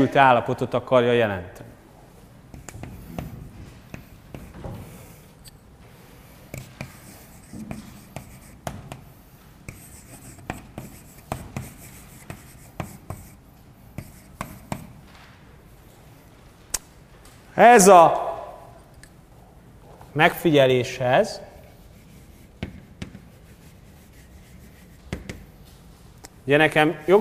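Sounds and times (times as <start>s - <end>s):
speech: 0.0s - 1.7s, 17.6s - 18.2s, 20.2s - 21.4s, 26.5s - 27.1s
pen strokes handwriting an x-hat symbol: 2.5s - 5.2s, 6.4s - 15.0s, 21.7s - 25.4s.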